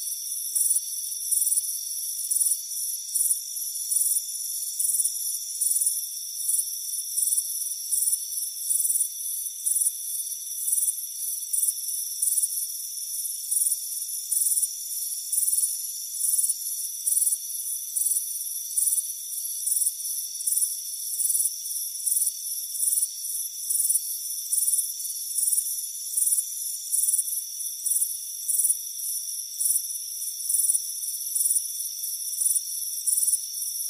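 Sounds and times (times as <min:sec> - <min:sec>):
cricket chirps: 0:00.0 - 0:33.8.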